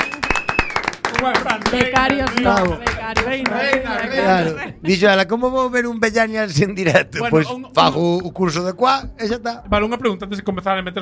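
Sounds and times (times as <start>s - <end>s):
audience applause: 0.0s - 4.4s
speech: 1.2s - 11.0s.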